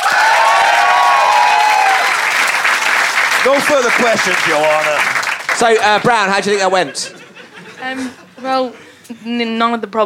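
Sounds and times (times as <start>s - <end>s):
crowd cheering and whooping: 0.0s - 4.9s
audience applause: 0.0s - 7.1s
speech: 3.4s - 7.2s, 7.9s - 10.0s
laughter: 3.4s - 9.0s.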